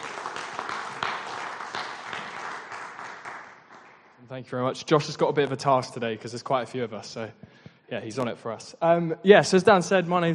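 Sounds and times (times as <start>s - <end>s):
audience applause: 0.0s - 4.2s
speech: 4.3s - 10.3s.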